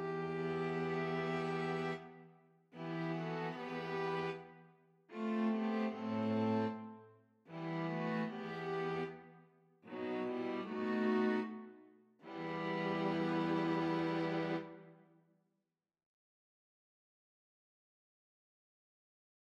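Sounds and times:
string quartet: 0.0 - 2.1, 2.8 - 4.5, 5.1 - 6.9, 7.5 - 9.3, 9.9 - 14.9.

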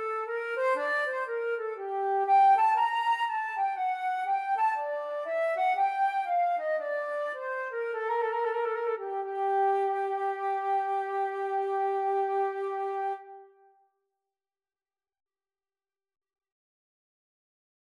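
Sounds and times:
bourree flute and clarinet duet: 0.0 - 13.5.

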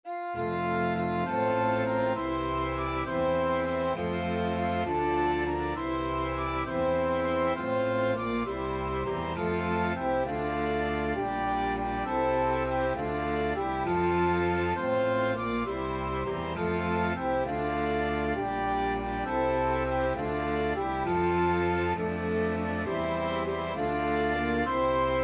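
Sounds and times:
flexible mixed ensemble of four players: 0.1 - 25.2.

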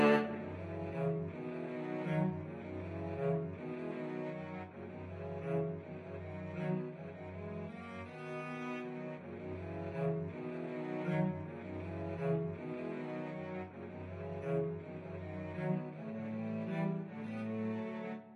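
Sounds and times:
cello trio playing Slavonic music: 0.0 - 18.3.

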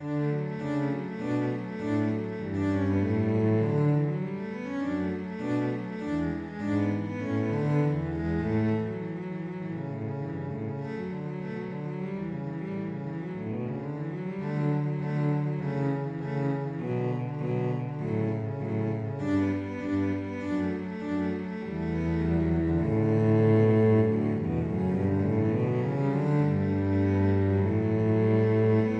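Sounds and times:
cello duet: 0.0 - 28.9.

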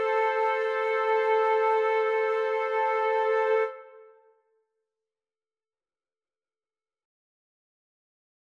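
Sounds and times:
flute quartet: 0.0 - 4.2.

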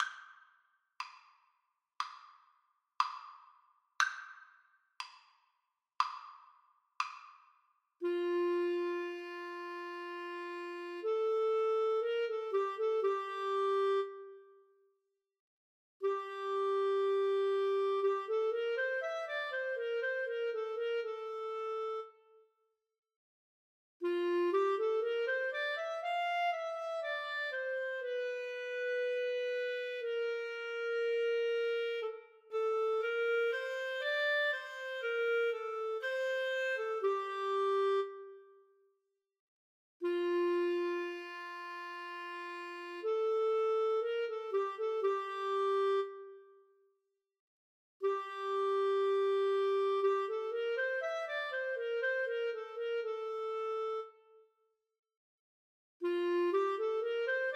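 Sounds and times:
clarinet duet: 8.0 - 14.7, 16.0 - 22.4, 24.0 - 38.7, 40.0 - 46.7, 48.0 - 54.4, 56.0 - 57.5.

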